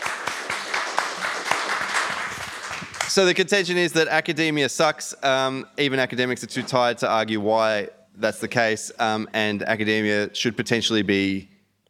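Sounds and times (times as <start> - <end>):
applause: 0.0 - 3.2
speech: 3.2 - 11.5.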